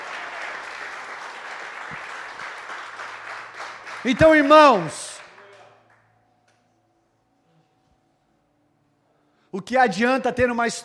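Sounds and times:
audience applauding: 0:00.0 - 0:06.0
speech: 0:04.0 - 0:05.0, 0:09.6 - 0:10.8.

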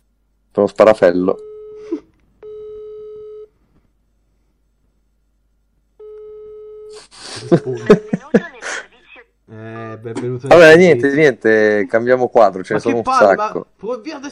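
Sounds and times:
speech: 0:00.6 - 0:02.1, 0:07.5 - 0:08.4, 0:10.2 - 0:14.3
Italian telephone line busy beeps: 0:01.4 - 0:03.5, 0:06.0 - 0:07.0
laughter: 0:07.2 - 0:08.8.

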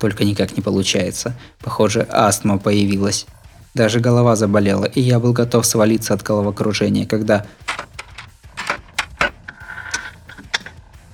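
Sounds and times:
speech: 0:00.0 - 0:08.0
key turning in a lock: 0:07.6 - 0:10.8.

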